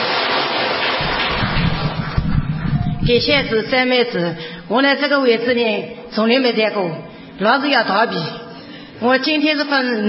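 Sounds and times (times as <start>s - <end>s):
audience applause: 0.0s - 3.6s
speech: 3.1s - 8.4s, 9.0s - 10.0s.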